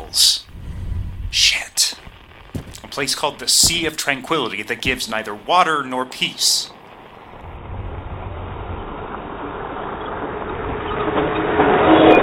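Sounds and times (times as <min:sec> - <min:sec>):
speech: 0:00.1 - 0:00.4, 0:03.0 - 0:06.8
electric lunar rover driving with grinding rumble: 0:07.5 - 0:12.1.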